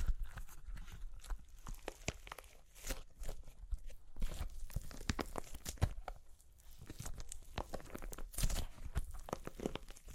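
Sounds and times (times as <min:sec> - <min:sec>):
dry crunchy clay cracking and crumbling: 0:00.0 - 0:10.1.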